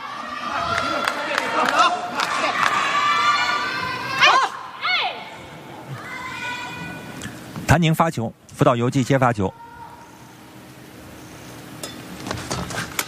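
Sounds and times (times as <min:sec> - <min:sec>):
badminton match spectators roaring: 0:00.0 - 0:07.2
spectators shouting jiayou: 0:00.0 - 0:07.2
speech: 0:07.8 - 0:09.6.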